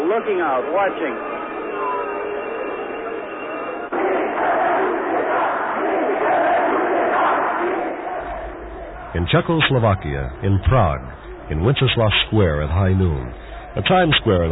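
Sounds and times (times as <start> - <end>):
crowd shouting: 0.0 - 14.5
speech: 0.1 - 1.9, 9.1 - 14.5
crowd clapping: 8.9 - 14.5.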